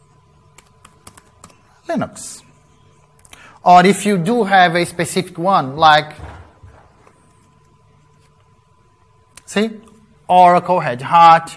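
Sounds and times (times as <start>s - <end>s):
light typing on a computer keyboard: 0.5s - 1.6s
speech: 1.9s - 2.5s, 3.6s - 6.3s, 9.5s - 11.5s.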